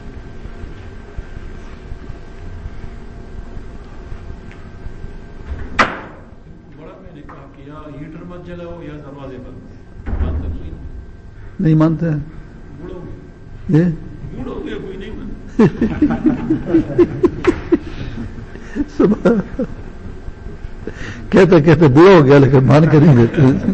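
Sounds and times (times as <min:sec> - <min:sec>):
door shutting with a thud: 0:05.4 - 0:06.4, 0:10.0 - 0:10.8
speech: 0:07.2 - 0:10.2, 0:11.6 - 0:12.4, 0:13.7 - 0:14.1, 0:15.6 - 0:17.3, 0:19.0 - 0:19.8, 0:21.3 - 0:23.7
laughter: 0:15.5 - 0:20.2, 0:20.8 - 0:23.7.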